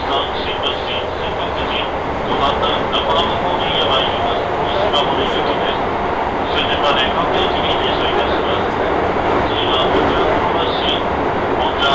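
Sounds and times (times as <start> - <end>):
moving train car rumble, Hokuso Railway to Toei Asakusa Line: 0.0 - 11.9.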